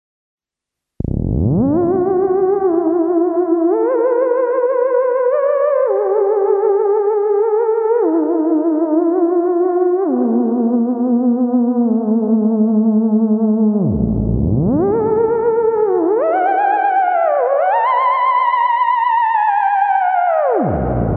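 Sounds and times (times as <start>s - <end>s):
theremin with reverb: 1.0s - 21.1s.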